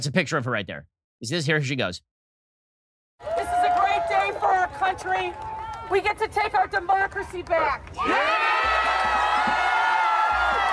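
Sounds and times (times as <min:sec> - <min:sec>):
speech: 0:00.0 - 0:02.1, 0:04.8 - 0:08.6
rally crowd cheering in the street: 0:03.2 - 0:10.7.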